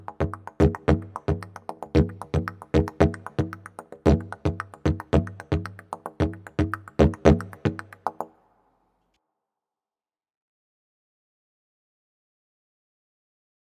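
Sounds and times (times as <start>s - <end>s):
advanced-level rhythm: 0.0s - 8.3s.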